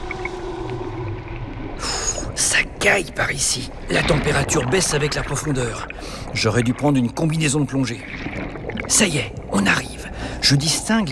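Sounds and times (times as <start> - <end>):
underwater low rumble: 0.0 - 2.8, 3.7 - 9.6
speech: 2.4 - 11.0.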